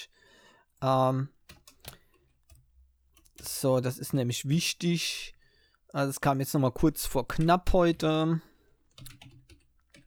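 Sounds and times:
speech: 0:00.8 - 0:01.4, 0:03.4 - 0:09.3
typing on a computer keyboard: 0:01.5 - 0:02.6, 0:08.9 - 0:10.0.

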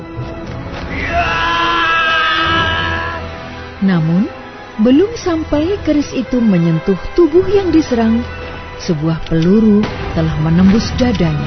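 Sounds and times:
man shouting a battle cry: 0:00.9 - 0:03.3
speech: 0:03.8 - 0:11.4.

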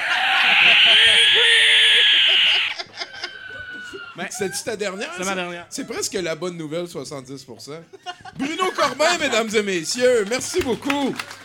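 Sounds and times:
person imitating a pig squeal: 0:00.0 - 0:05.4
laughter: 0:00.0 - 0:06.4, 0:07.5 - 0:11.4
speech: 0:04.2 - 0:11.4.

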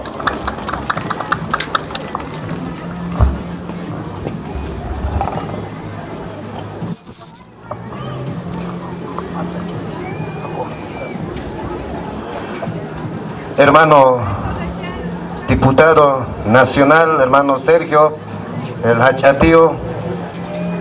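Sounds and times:
audience clapping: 0:00.0 - 0:02.9
sharp high whistle: 0:06.8 - 0:08.1
speech: 0:13.6 - 0:14.4, 0:15.6 - 0:18.2, 0:18.8 - 0:19.8.

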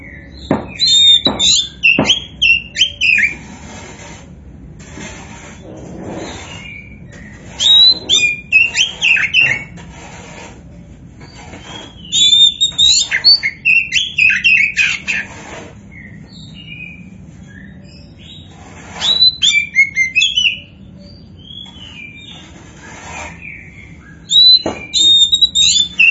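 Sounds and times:
Oriental magpie-robin singing: 0:00.0 - 0:03.4, 0:06.2 - 0:09.8, 0:11.2 - 0:15.3, 0:15.9 - 0:26.0
faint background hum: 0:00.0 - 0:26.0.

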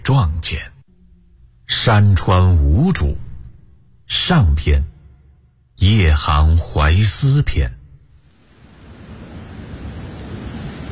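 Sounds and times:
speech: 0:00.1 - 0:00.7, 0:01.8 - 0:03.2, 0:04.1 - 0:04.9, 0:05.8 - 0:07.8
heavy rain: 0:08.1 - 0:10.9.

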